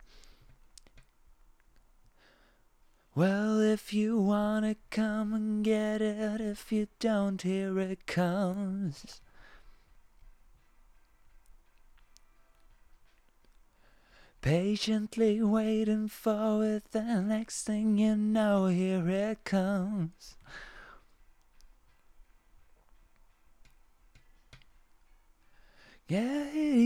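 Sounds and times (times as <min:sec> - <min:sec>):
vocals: 0:02.9 - 0:10.4, 0:13.6 - 0:21.8, 0:25.5 - 0:26.8.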